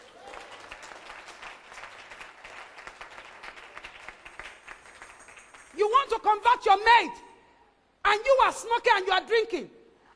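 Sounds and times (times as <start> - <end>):
audience applause: 0.0 - 5.7
speech: 5.8 - 7.3, 8.1 - 9.8.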